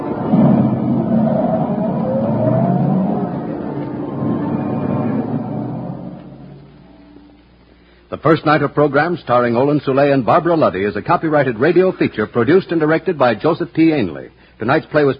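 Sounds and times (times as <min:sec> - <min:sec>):
taxi cab engine revving as it drives away: 0:00.1 - 0:07.0
speech: 0:08.2 - 0:15.1.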